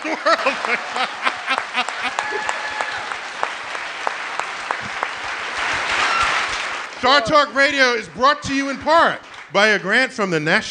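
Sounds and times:
laughter: 0:00.0 - 0:03.2
audience applause: 0:00.0 - 0:10.0
speech: 0:00.1 - 0:01.3, 0:07.0 - 0:10.6.

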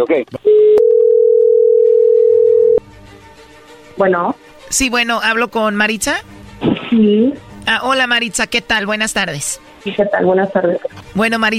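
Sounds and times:
speech: 0:00.0 - 0:00.5, 0:04.0 - 0:11.5
telephone dialing tone: 0:00.5 - 0:02.8.

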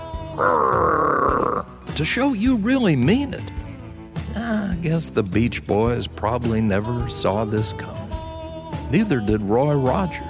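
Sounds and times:
person growling: 0:00.3 - 0:01.8
speech: 0:00.4 - 0:00.7, 0:02.0 - 0:03.6, 0:04.8 - 0:08.0, 0:08.9 - 0:10.2.

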